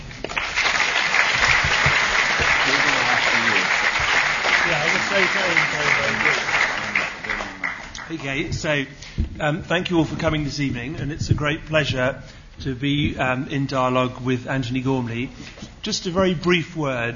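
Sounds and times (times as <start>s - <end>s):
audience applause: 0.0s - 8.4s
speech: 8.1s - 17.1s.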